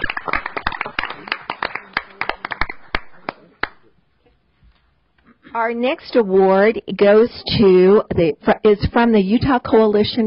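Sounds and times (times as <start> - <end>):
audience applause: 0.0 - 3.8
speech: 5.6 - 10.2.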